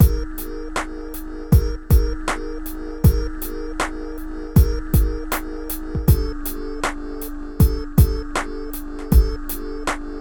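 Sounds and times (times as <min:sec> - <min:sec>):
phat beat: 0:00.0 - 0:10.2.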